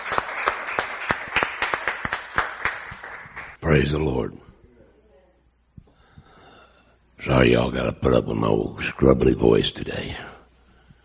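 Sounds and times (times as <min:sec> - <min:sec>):
audience cheering and clapping: 0:00.0 - 0:03.6
speech: 0:03.7 - 0:04.4, 0:07.4 - 0:10.3.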